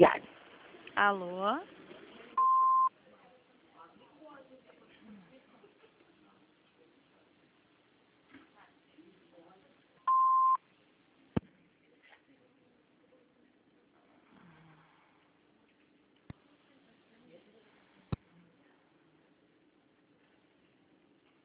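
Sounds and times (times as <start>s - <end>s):
speech: 1.0s - 1.8s
voicemail electronic beeps: 2.4s - 2.9s, 10.1s - 10.6s.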